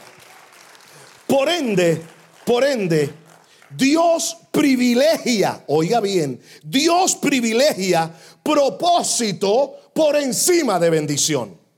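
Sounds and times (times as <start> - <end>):
church audience applause: 0.0 - 3.8
speech: 1.3 - 11.6.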